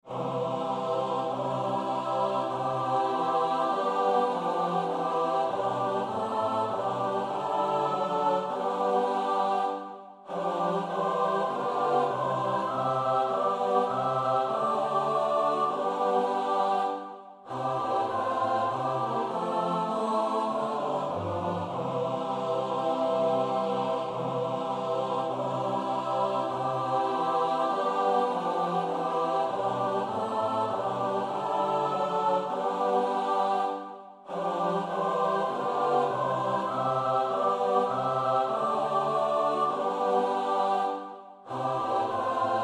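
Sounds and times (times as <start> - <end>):
soprano alto tenor bass choir: 0.0 - 42.6.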